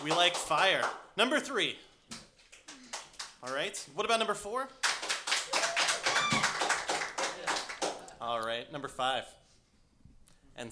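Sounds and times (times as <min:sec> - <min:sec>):
speech: 0:00.0 - 0:02.2, 0:03.4 - 0:04.8, 0:08.2 - 0:09.4, 0:10.6 - 0:10.7
audience applause: 0:04.8 - 0:08.1.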